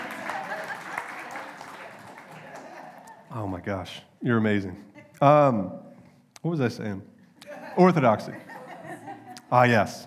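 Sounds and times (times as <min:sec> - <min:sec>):
round of applause: 0:00.0 - 0:03.3
laughter: 0:00.0 - 0:03.6, 0:07.4 - 0:09.9
speech: 0:03.3 - 0:05.8, 0:06.4 - 0:07.1, 0:07.8 - 0:08.5, 0:09.5 - 0:10.0.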